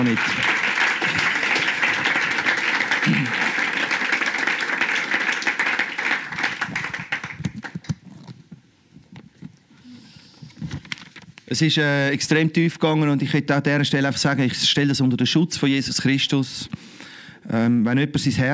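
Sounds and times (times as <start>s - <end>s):
speech: 0.0s - 0.4s, 11.5s - 16.9s, 17.5s - 18.5s
crowd applause: 0.0s - 8.0s.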